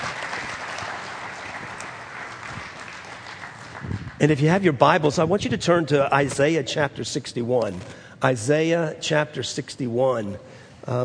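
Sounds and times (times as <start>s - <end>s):
audience clapping: 0.0s - 4.6s
speech: 4.2s - 11.0s.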